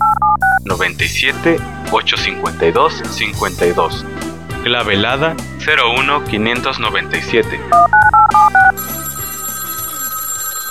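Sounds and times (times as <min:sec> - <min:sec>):
telephone keypad dialing tones: 0:00.0 - 0:00.6, 0:07.7 - 0:10.6
speech: 0:00.7 - 0:08.7.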